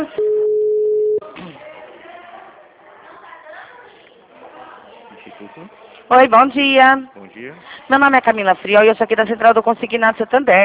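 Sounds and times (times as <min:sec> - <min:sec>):
telephone tone during a bank call-centre call transfer: 0:00.0 - 0:01.2
speech: 0:06.1 - 0:10.6.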